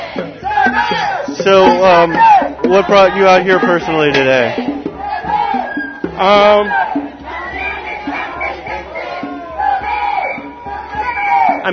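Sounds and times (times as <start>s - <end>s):
crowd of protesters shouting: 0.0s - 11.7s
speech: 0.8s - 4.8s, 6.2s - 6.8s.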